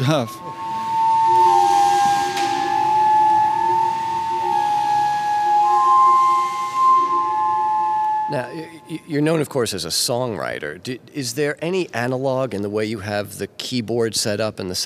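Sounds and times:
speech: 0.0s - 0.5s, 8.3s - 14.8s
air blown through pipes making flute-like tones: 0.0s - 9.5s.

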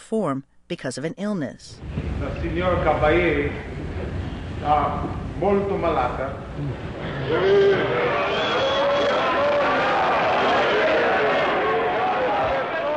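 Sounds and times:
speech: 0.1s - 3.8s, 4.6s - 8.4s
opera audience booing: 6.9s - 12.9s.

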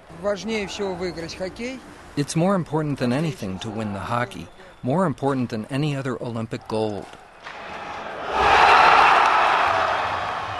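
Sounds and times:
speech: 0.2s - 7.6s
hockey fans cheering and roaring at a winning goal: 7.4s - 10.5s.

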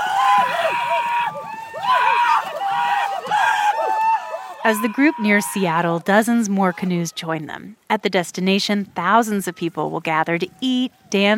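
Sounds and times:
supporters cheering as canoe comes ashore: 0.0s - 7.3s
speech: 4.6s - 11.3s.

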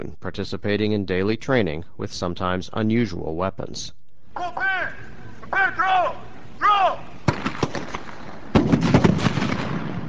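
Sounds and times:
speech: 0.0s - 7.0s
crowd-control hand grenades exploding with a bang: 7.3s - 10.0s.

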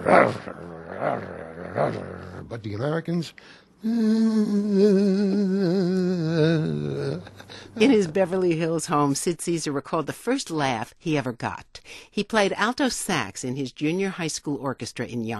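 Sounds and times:
speech: 0.0s - 15.3s
man imitating World War II fighter plane engines: 3.8s - 7.4s.

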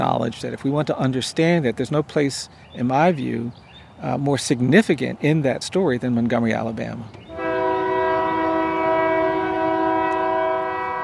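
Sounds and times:
speech: 0.0s - 7.2s
train horn blaring: 7.3s - 11.0s.

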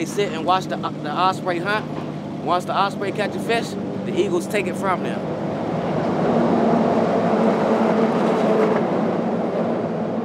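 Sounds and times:
speech: 0.0s - 5.4s
traffic roar on a bridge: 0.0s - 10.2s.

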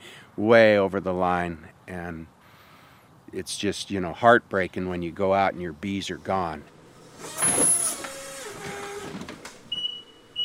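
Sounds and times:
speech: 0.4s - 2.4s, 3.3s - 7.7s
forklift moving sageflower honey in a warehouse: 6.6s - 10.4s.

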